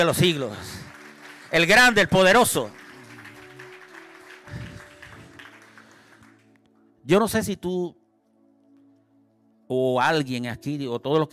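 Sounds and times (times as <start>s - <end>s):
speech: 0.0s - 0.8s, 1.5s - 2.8s, 7.1s - 8.0s, 9.7s - 11.3s
audience applause: 0.0s - 6.6s.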